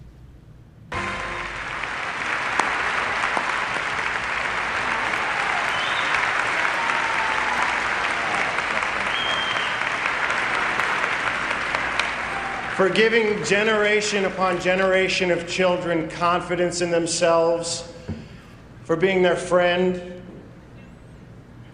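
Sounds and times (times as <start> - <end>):
large audience applause at an awards ceremony: 1.0 - 14.6
speech: 12.8 - 17.9, 18.9 - 20.1.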